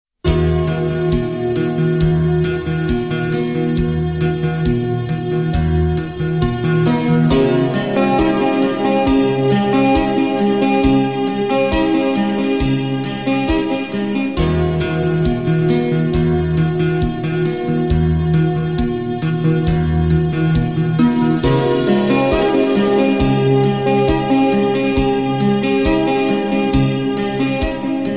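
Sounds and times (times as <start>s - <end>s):
instrumental music: 0.2s - 28.1s.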